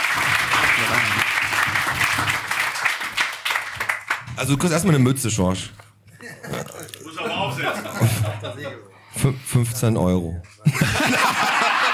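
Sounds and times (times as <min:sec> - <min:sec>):
audience applause: 0:00.0 - 0:04.3
speech: 0:04.4 - 0:05.8, 0:08.0 - 0:11.2
laughter: 0:06.1 - 0:08.9, 0:10.6 - 0:11.9.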